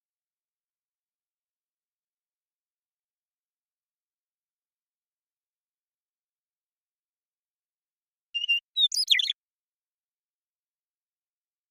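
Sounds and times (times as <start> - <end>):
western meadowlark singing: 8.4 - 9.4.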